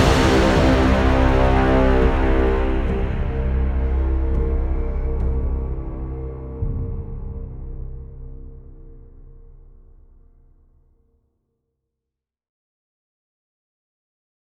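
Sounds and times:
battle drums: 0.0 - 6.0.

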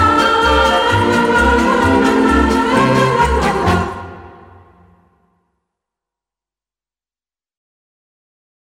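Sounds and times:
Christmas song: 0.0 - 5.3.

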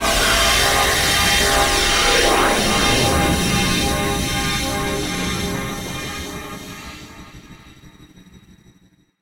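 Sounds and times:
space warp effect: 0.6 - 7.8.

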